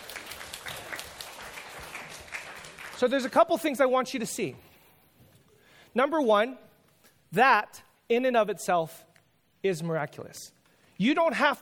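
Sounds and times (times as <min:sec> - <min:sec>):
audience applause: 0:00.0 - 0:03.3
speech: 0:03.0 - 0:04.7, 0:06.0 - 0:06.7, 0:07.3 - 0:11.6.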